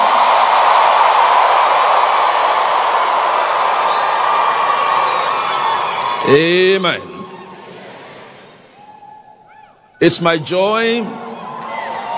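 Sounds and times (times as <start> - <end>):
crowd cheers and whoops: 0.0 - 6.4, 8.7 - 9.9, 11.2 - 12.1
large crowd applauding: 0.0 - 8.9, 11.4 - 12.1
speech: 6.3 - 7.1, 10.0 - 11.3.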